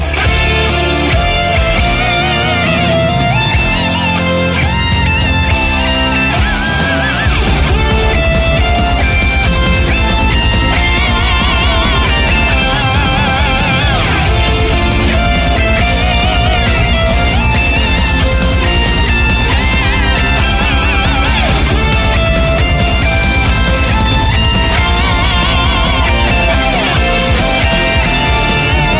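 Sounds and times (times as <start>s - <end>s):
theme music: 0.0s - 28.9s.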